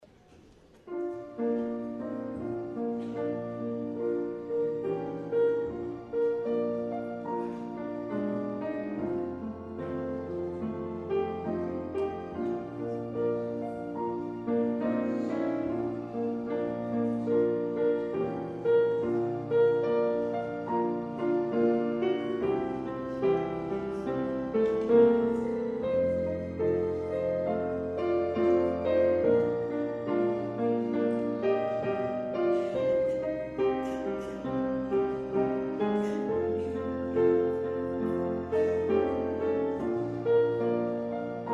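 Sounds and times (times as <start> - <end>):
prelude music: 0.4 - 41.5.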